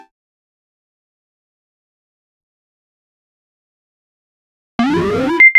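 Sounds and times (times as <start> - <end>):
variety of satisfying notification sounds: 4.8 - 5.5.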